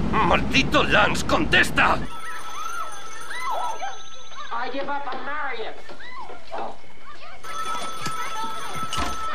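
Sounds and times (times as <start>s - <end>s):
speech: 0.2s - 2.2s, 4.7s - 6.8s
telephone ringing: 2.1s - 5.7s, 7.4s - 9.3s.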